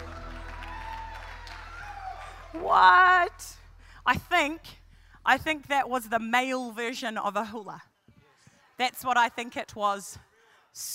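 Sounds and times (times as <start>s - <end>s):
audience clapping: 0.0s - 2.7s
low constant hum: 0.0s - 6.2s
speech: 2.5s - 7.9s, 8.8s - 10.9s.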